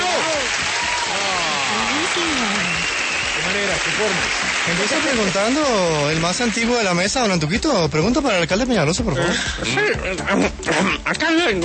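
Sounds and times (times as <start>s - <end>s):
applause: 0.0s - 7.3s
speech: 3.7s - 11.6s.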